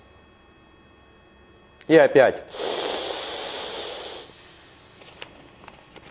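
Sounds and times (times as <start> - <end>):
speech: 1.9 - 2.8
long breathy exhale during a breathing exercise: 2.5 - 4.5.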